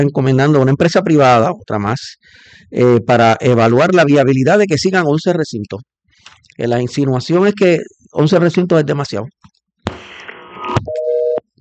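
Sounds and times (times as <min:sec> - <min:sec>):
speech: 0:00.0 - 0:09.4
telephone busy tone after a dropped call: 0:10.4 - 0:11.4.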